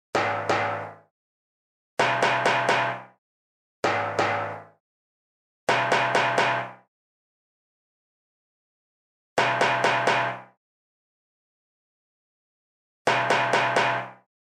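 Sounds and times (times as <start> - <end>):
percussion: 0.2 - 1.1, 2.0 - 3.2, 3.8 - 4.8, 5.7 - 6.9, 9.4 - 10.6, 13.1 - 14.3.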